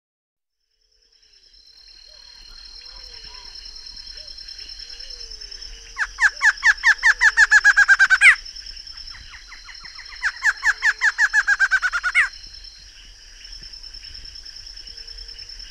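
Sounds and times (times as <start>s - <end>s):
Barred antshrike singing in the Pantanal: 6.0s - 8.4s, 9.1s - 12.4s.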